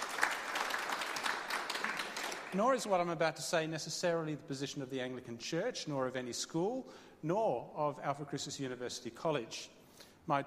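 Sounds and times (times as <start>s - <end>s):
audience applause for the senior archivist who organised a library event: 0.0s - 2.6s
speech: 2.5s - 10.4s.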